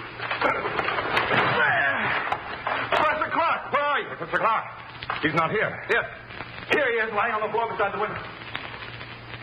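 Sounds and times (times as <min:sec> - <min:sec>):
wooden door being broken down: 0:00.4 - 0:03.0
speech: 0:04.4 - 0:08.3.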